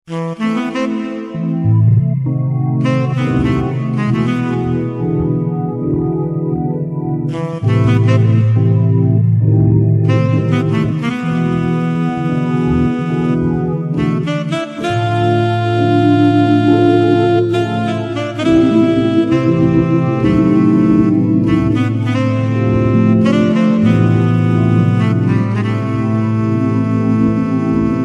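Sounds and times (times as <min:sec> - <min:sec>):
nostalgic Roland GW8 keyboard music: 0:00.1 - 0:28.0.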